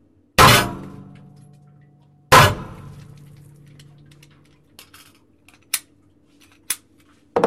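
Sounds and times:
9 mm test shots fired into a water well: 0:00.4 - 0:01.4, 0:02.3 - 0:04.2.

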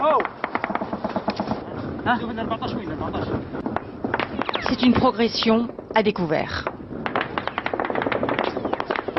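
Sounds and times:
gunfire during desert combat in Libya in 2011: 0:00.2 - 0:01.6, 0:07.0 - 0:09.1
speech: 0:02.1 - 0:03.9, 0:04.6 - 0:06.7.

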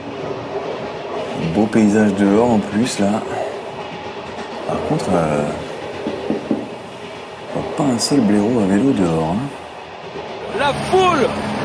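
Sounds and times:
inside a moving train: 0:00.0 - 0:11.6
speech: 0:01.4 - 0:03.4, 0:04.7 - 0:05.6, 0:07.8 - 0:09.6, 0:10.6 - 0:11.6.

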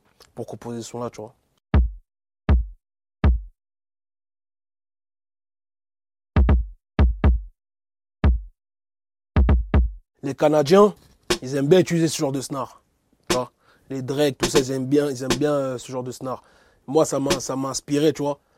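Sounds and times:
speech: 0:00.4 - 0:01.4, 0:10.2 - 0:12.8, 0:13.4 - 0:18.5
kick drum sample from a beat: 0:01.7 - 0:03.6, 0:06.4 - 0:07.6, 0:08.2 - 0:08.6, 0:09.4 - 0:10.0.

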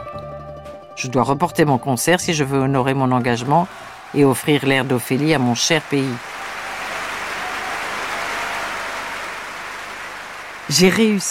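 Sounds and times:
speech: 0:01.0 - 0:06.3, 0:10.7 - 0:11.2
audience applause giving an ovation to an opera singer: 0:03.3 - 0:11.2.

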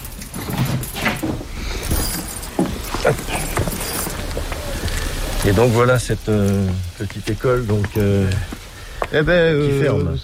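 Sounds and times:
bunch of keys jangling: 0:00.0 - 0:04.2
low murmur: 0:01.6 - 0:10.2
speech: 0:03.1 - 0:03.3, 0:05.5 - 0:10.2.

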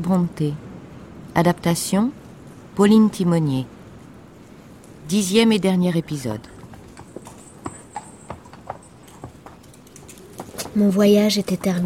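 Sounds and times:
speech: 0:00.0 - 0:00.6, 0:01.4 - 0:02.2, 0:02.8 - 0:03.8, 0:05.1 - 0:06.5, 0:10.8 - 0:11.8
horse hooves clip-clopping: 0:06.2 - 0:11.8.

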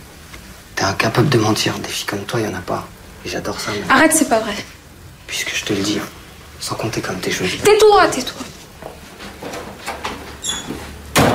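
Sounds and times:
speech: 0:00.8 - 0:08.5
door slamming shut: 0:09.5 - 0:11.3
brief high squeak: 0:10.4 - 0:10.8.

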